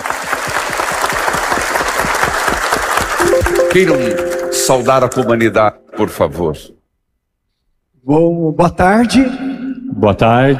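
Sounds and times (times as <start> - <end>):
audience applauding: 0.0 - 5.5
speech: 3.7 - 6.8, 8.0 - 9.4, 10.0 - 10.5.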